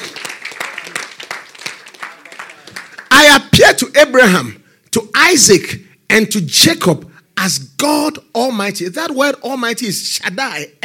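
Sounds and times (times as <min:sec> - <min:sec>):
audience clapping: 0:00.0 - 0:03.3
speech: 0:04.1 - 0:10.8.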